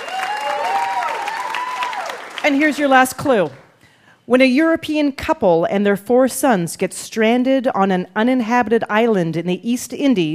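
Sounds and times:
crowd applauding: 0.0 - 3.8
speech: 2.4 - 3.6, 4.3 - 10.3.

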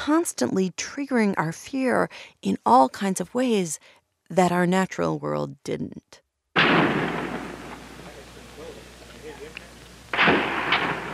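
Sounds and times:
speech: 0.0 - 6.8
gunfire from the 1966 University of Texas tower shooting in Austin: 6.6 - 8.7, 10.1 - 11.1
faint crackling: 6.6 - 11.1.

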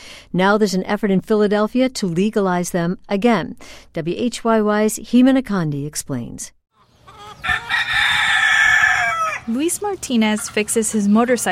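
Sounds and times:
speech: 0.3 - 6.6, 9.5 - 11.5
rooster crowing in a backyard in northern Philadelphia: 6.8 - 9.5
chickens clucking in a backyard in northern Philadelphia: 6.8 - 11.5.

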